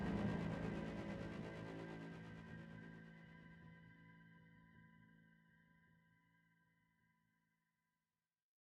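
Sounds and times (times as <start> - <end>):
tense music loop: 0.0 - 2.7.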